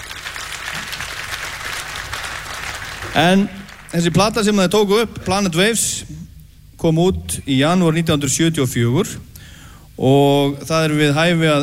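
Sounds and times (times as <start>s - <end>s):
audience applause at a birthday tribute concert: 0.0s - 4.3s
speech: 3.1s - 6.2s, 6.8s - 9.3s, 10.0s - 11.6s.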